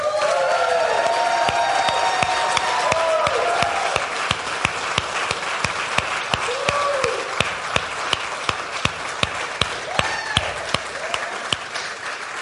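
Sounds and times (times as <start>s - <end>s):
whoops and cheers: 0.0s - 4.1s, 6.5s - 7.3s, 9.9s - 11.4s
crowd applause: 0.0s - 12.3s.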